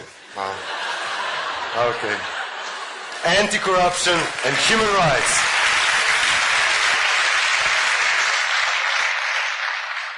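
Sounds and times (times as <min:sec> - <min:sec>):
laughter: 0:00.0 - 0:07.0
speech: 0:00.4 - 0:00.8, 0:01.8 - 0:02.4, 0:03.2 - 0:05.5
sustained applause from a large audience: 0:00.4 - 0:10.1.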